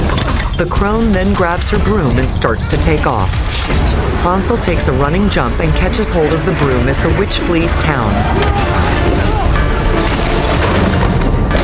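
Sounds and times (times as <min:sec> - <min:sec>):
speech: 0:00.6 - 0:08.8
man crashing through a roof: 0:08.4 - 0:11.6.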